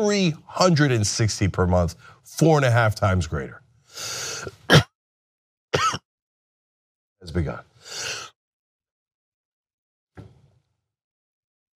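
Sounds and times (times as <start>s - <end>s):
speech: 0.0s - 4.8s, 7.2s - 8.2s
person coughing harshly: 4.4s - 5.0s, 5.8s - 6.1s.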